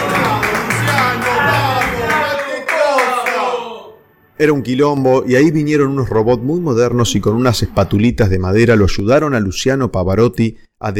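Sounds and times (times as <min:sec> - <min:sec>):
crowd applauding: 0:00.0 - 0:03.8
speech: 0:04.4 - 0:10.9.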